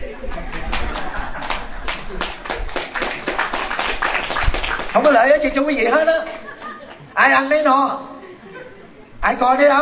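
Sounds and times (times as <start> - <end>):
laughter: 0.0 - 2.6, 5.9 - 7.2, 8.1 - 9.2
audience clapping: 0.5 - 5.5
speech: 5.0 - 6.3, 7.2 - 8.1, 9.2 - 9.8.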